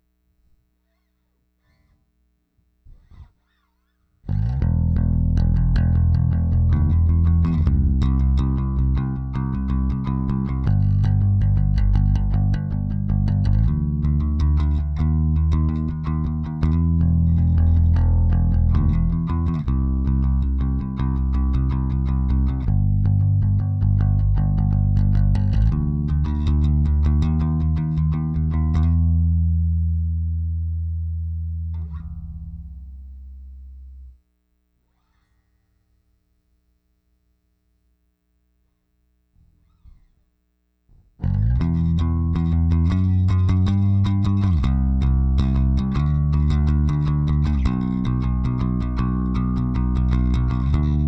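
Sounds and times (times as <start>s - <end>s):
bass: 4.2s - 34.3s, 40.9s - 51.0s.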